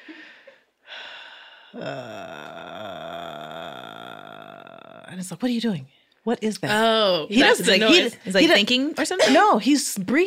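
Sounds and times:
person imitating loud breathing while falling asleep: 0.0 - 5.1
speech: 1.7 - 2.6, 5.1 - 10.2.

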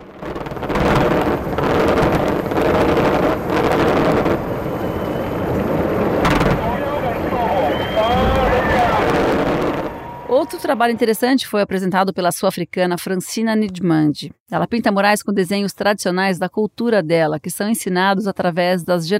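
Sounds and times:
fireworks exploding: 0.0 - 11.0
rising whistles: 4.5 - 10.9
crowd voices: 6.4 - 11.4
speech: 10.6 - 19.1.

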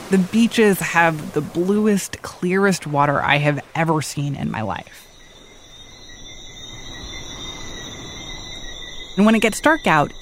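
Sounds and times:
island breeze at night: 0.0 - 10.1
speech: 0.1 - 5.0, 9.2 - 10.1
chorus of little frogs at night on the island: 4.3 - 10.1.

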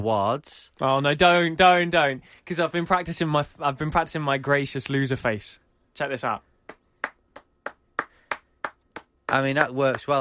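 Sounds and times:
speech: 0.0 - 6.5, 9.3 - 10.1
light clapping: 6.7 - 10.1.

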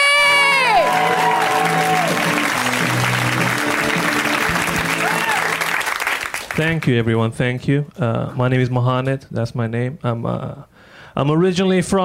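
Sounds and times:
comedy show audience whooping: 0.0 - 6.4
comedy show audience clapping for a comedian: 0.3 - 7.0
speech: 6.6 - 12.0.

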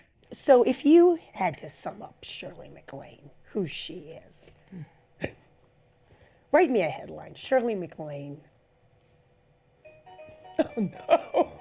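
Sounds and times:
speech: 0.3 - 5.4, 6.5 - 8.5, 10.6 - 11.5
mobile phone ringtone: 9.8 - 11.0
laughter: 10.6 - 11.5.

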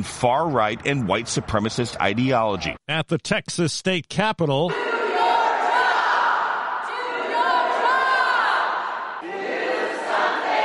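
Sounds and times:
speech: 0.0 - 4.9
large crowd of protesters shouting demands: 4.7 - 10.6.

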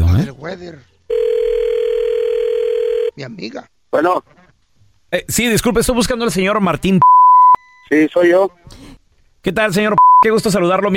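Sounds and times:
speech: 0.4 - 1.0, 3.2 - 4.4, 5.1 - 7.2, 7.9 - 10.9
telephone line tone on an outgoing call: 1.1 - 3.1.

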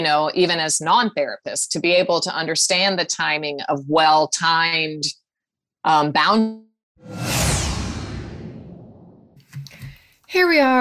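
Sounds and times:
speech: 0.0 - 5.2, 5.8 - 7.4, 10.3 - 10.7
swoosh sound effect: 7.0 - 9.4.

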